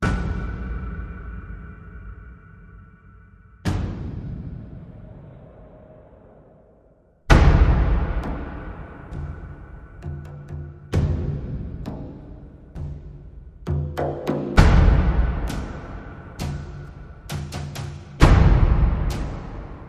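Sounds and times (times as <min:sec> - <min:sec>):
percussion: 0:00.0 - 0:05.9, 0:07.2 - 0:19.8.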